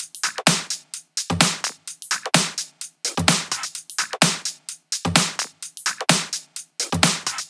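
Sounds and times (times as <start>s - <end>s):
drums: 0.0s - 7.4s.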